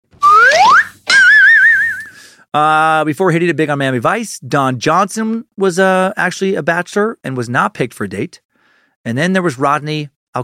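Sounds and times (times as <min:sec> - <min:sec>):
slide whistle: 0:00.2 - 0:02.2
speech: 0:02.5 - 0:08.4, 0:09.0 - 0:10.4.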